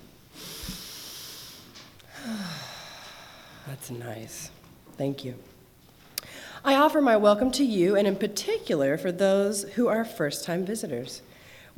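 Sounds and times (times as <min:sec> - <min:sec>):
church congregation taking a deep breath together: 0:00.3 - 0:03.7
speech: 0:03.7 - 0:05.5, 0:06.6 - 0:11.3.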